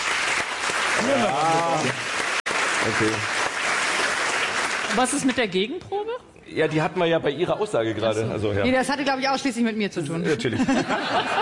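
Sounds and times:
audience clapping to vote at a public discussion: 0:00.0 - 0:05.6
speech: 0:01.0 - 0:02.2, 0:02.8 - 0:03.4, 0:04.9 - 0:11.3
laughter: 0:10.2 - 0:11.3.

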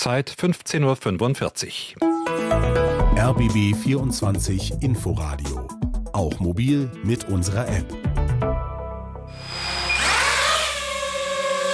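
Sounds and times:
speech: 0:00.0 - 0:08.1
flying drone buzzing in the city: 0:09.3 - 0:11.7.

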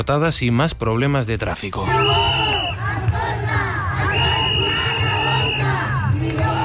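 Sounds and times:
speech: 0:00.0 - 0:02.6
whistles shrilling in long sustained blasts: 0:01.9 - 0:02.8, 0:04.1 - 0:05.7
teachers' street protest crowd roaring and chanting: 0:01.9 - 0:06.6.

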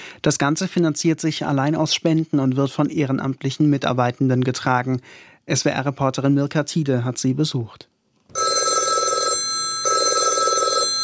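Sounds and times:
speech: 0:00.2 - 0:08.4
telephone ringtone alarm signal: 0:08.3 - 0:11.0.

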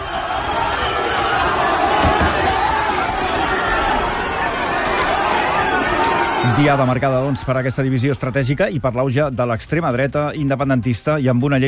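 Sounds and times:
crowd shouting during a police scuffle: 0:00.0 - 0:09.0
scattered thuds: 0:01.9 - 0:02.6
speech: 0:06.6 - 0:11.6.

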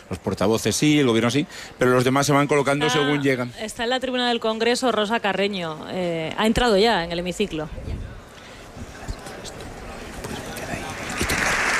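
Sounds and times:
murmur of voices: 0:00.0 - 0:11.7
speech: 0:00.1 - 0:08.1
applause in a parliament chamber: 0:11.2 - 0:11.7.

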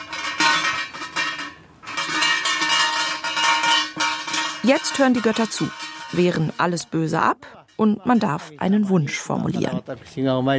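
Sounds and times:
shrine bell shaken on its rope: 0:01.4 - 0:08.5
speech: 0:04.6 - 0:10.5.

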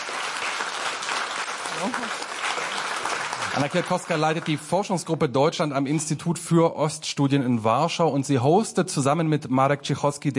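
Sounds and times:
crowd applause: 0:00.0 - 0:05.0
speech: 0:01.8 - 0:02.3, 0:03.6 - 0:10.3.

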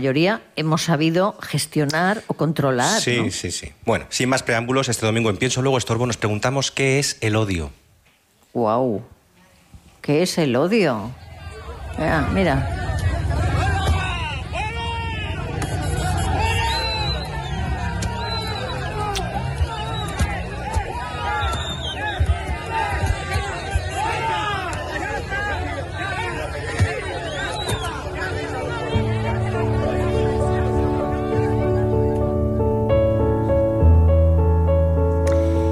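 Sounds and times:
speech: 0:00.0 - 0:07.8, 0:08.5 - 0:09.2, 0:10.0 - 0:11.3, 0:12.0 - 0:12.9
angry mob shouting and jeering at a car: 0:11.2 - 0:32.0
steady music: 0:27.9 - 0:35.6.

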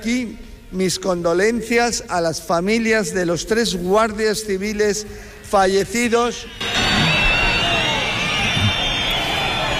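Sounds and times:
speech: 0:00.0 - 0:06.6
crowd booing a minister: 0:06.6 - 0:09.7.

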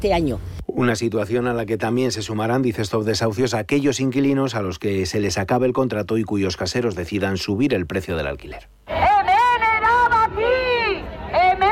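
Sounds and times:
speech: 0:00.0 - 0:08.9
protesters shouting in the street: 0:08.9 - 0:11.7.

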